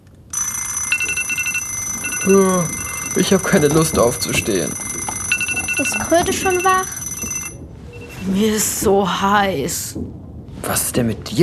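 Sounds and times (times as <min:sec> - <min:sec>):
alarm clocks ringing: 0:00.3 - 0:08.2
speech: 0:02.2 - 0:04.8, 0:05.8 - 0:07.0, 0:08.2 - 0:11.4.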